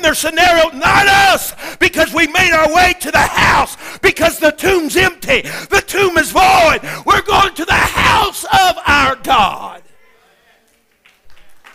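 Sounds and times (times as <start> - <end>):
speech: 0.0 - 9.9
audience clapping hands: 10.6 - 11.7.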